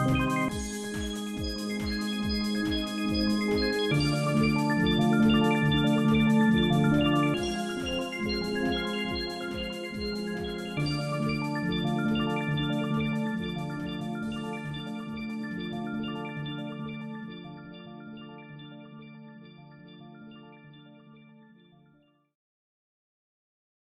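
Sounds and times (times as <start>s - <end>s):
little bells for relaxation: 0.0s - 18.6s.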